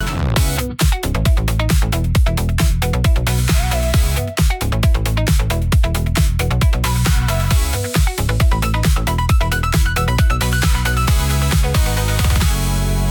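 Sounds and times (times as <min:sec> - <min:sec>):
music loop: 0:00.0 - 0:13.0.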